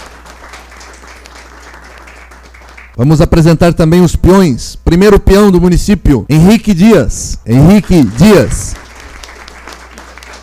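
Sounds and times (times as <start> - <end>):
audience applause at a gaúcho tradition ceremony: 0.0 - 3.0, 7.7 - 10.4
speech: 3.0 - 8.8.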